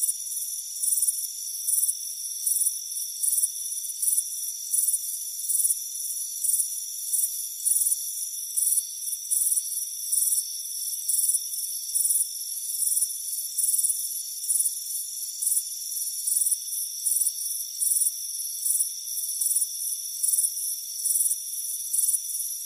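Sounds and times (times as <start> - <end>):
crickets chirping: 0.0 - 22.6.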